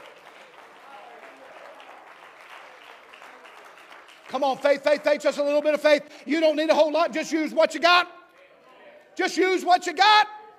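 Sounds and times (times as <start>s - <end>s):
audience clapping hands: 0.0s - 6.0s
speech: 4.3s - 8.2s, 9.2s - 10.4s.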